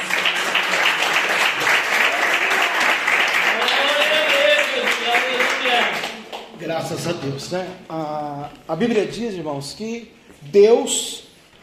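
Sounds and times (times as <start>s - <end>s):
audience applauding: 0.0s - 6.5s
speech: 6.7s - 11.2s.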